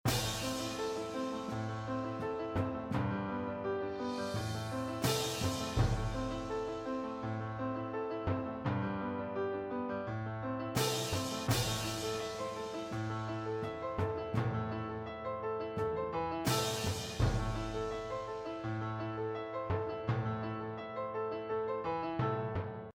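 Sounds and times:
new piano jingle: 0.1s - 22.6s.

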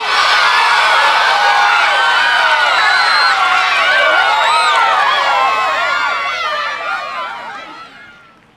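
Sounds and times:
people cheering: 0.0s - 8.5s.

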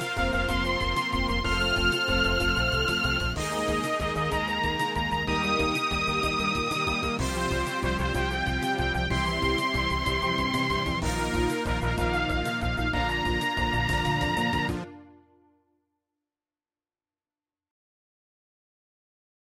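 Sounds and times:
MIDI theme music: 0.0s - 15.4s.

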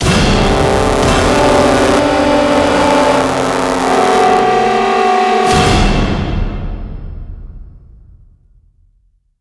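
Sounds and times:
large string section: 0.0s - 6.7s.

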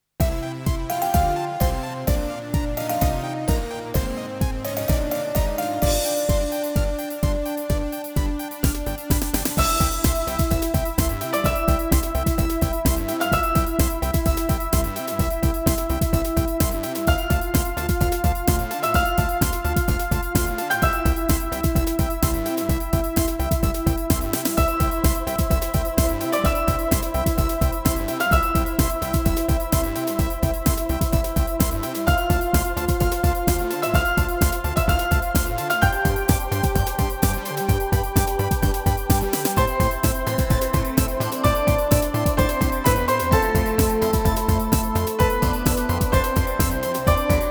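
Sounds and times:
mechanic techno music: 0.2s - 47.4s.

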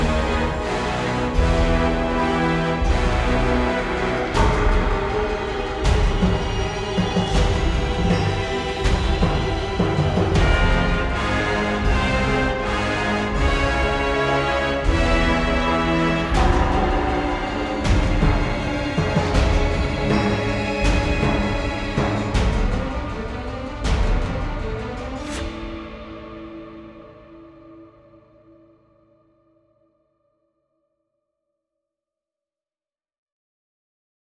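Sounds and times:
battle music loop: 0.0s - 27.2s.

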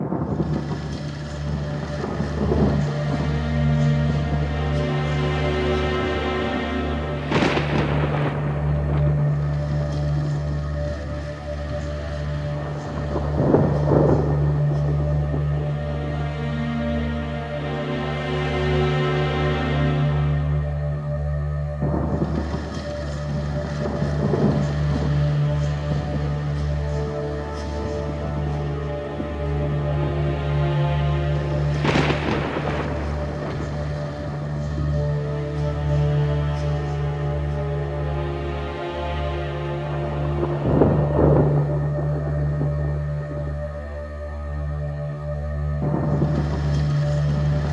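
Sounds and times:
background music for an entrance: 0.0s - 47.7s.

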